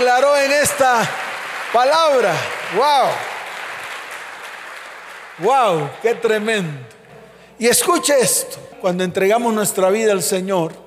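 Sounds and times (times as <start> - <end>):
audience applause: 0.0 - 6.8
speech: 0.1 - 3.3, 5.4 - 7.0, 7.6 - 10.8.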